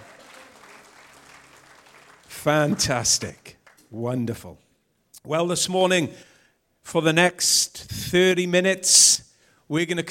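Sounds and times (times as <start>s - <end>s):
audience applauding: 0.0s - 3.9s
speech: 2.4s - 4.6s, 5.2s - 6.3s, 6.9s - 10.0s.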